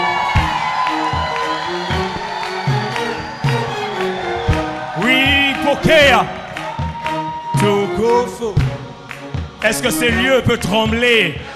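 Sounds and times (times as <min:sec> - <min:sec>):
audience shouting for joy: 0:00.0 - 0:08.4
speech: 0:06.0 - 0:06.4, 0:08.0 - 0:08.8, 0:09.6 - 0:11.5.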